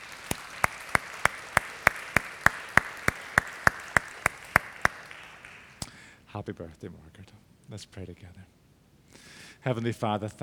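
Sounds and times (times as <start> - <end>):
audience applause: 0.0 - 5.8
speech: 6.4 - 8.6, 9.6 - 10.4.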